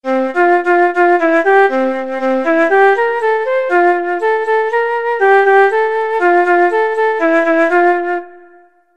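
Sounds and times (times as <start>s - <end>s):
flute: 0.0s - 8.9s.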